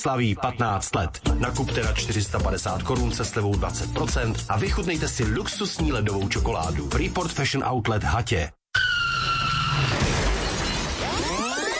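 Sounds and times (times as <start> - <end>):
speech: 0.0 - 8.6
tires squealing in skids: 8.8 - 10.9
glass shattering in a car crash: 9.8 - 11.7.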